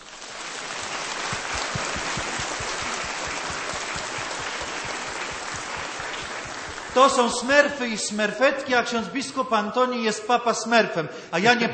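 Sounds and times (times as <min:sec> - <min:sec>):
applause: 0:00.0 - 0:07.9
speech: 0:07.0 - 0:11.7.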